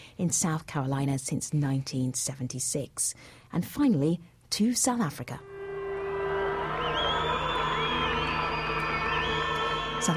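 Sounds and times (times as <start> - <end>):
speech: 0.2 - 5.5
crowds and supporters of the ANC celebrating: 5.4 - 10.1.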